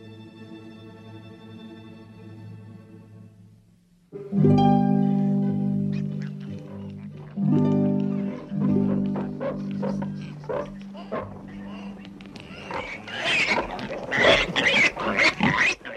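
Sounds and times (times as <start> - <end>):
pigs grunting: 5.4 - 15.9.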